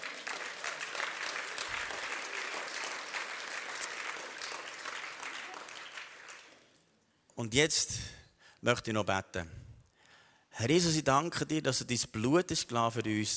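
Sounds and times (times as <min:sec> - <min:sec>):
audience applause: 0:00.0 - 0:06.8
speech: 0:07.4 - 0:09.6, 0:10.6 - 0:13.3.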